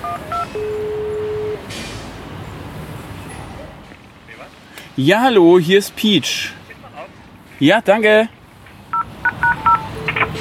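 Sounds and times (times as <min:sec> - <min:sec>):
intercom electronic beeps: 0:00.0 - 0:01.6, 0:09.0 - 0:10.3
low rumble of street noise: 0:00.0 - 0:10.3
speech: 0:05.0 - 0:06.6, 0:07.6 - 0:08.4.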